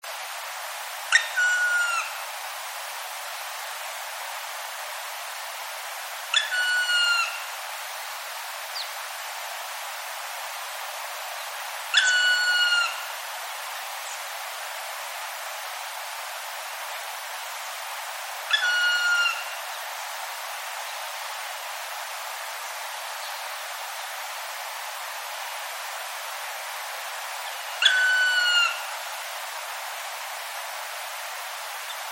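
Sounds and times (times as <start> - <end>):
steady hiss: 0.0 - 32.1
black woodpecker ringing calls: 11.9 - 13.0, 18.5 - 19.5, 27.8 - 28.8.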